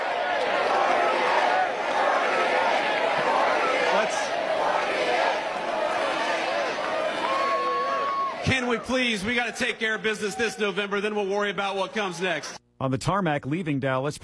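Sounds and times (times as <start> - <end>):
Republican midterm convention audience chanting 48 for the vice president: 0.0 - 8.5
speech: 8.8 - 14.2.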